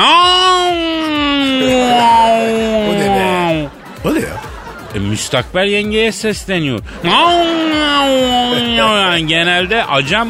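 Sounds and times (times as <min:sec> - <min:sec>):
man imitating a cat yowling in March: 0:00.0 - 0:03.7, 0:07.1 - 0:09.2
laughter: 0:00.4 - 0:10.2
speech: 0:05.2 - 0:10.2.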